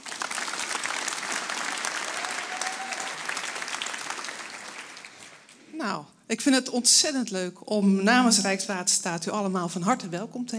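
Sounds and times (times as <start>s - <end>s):
large audience test applause in Ahoy Rotterdam: 0.0s - 5.7s
speech: 5.8s - 10.5s.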